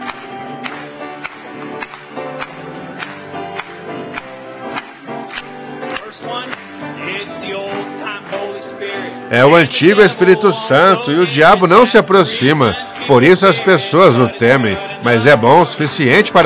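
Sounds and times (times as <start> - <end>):
audience clapping hands in steady rhythm: 0.0 - 16.4
music: 0.0 - 16.4
singing: 6.0 - 16.4
speech: 9.3 - 16.4.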